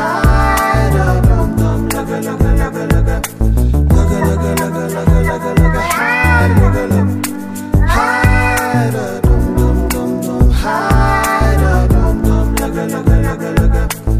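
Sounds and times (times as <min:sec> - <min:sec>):
soulful singing live looping remix: 0:00.0 - 0:14.1.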